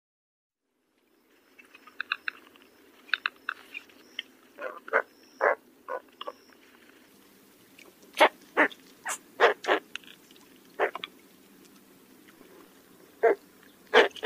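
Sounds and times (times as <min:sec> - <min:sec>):
spoonbill grunting: 0:04.5 - 0:06.5, 0:08.2 - 0:09.9, 0:10.8 - 0:11.1, 0:12.4 - 0:14.2.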